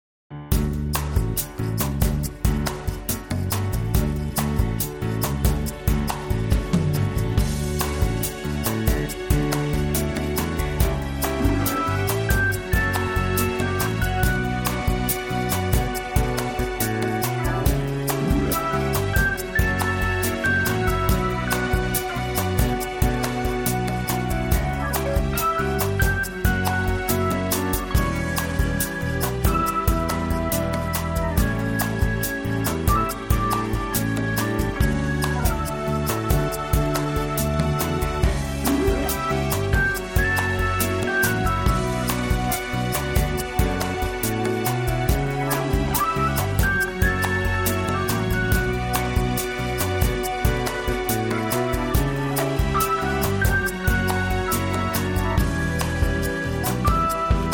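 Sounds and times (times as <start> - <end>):
instrumental music: 0.3 - 57.5.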